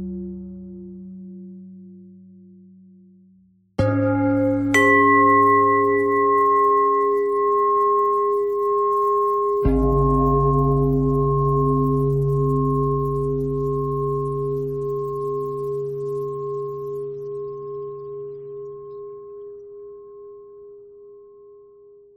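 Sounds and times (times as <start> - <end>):
pentatonic bell melody: 3.8 - 21.2.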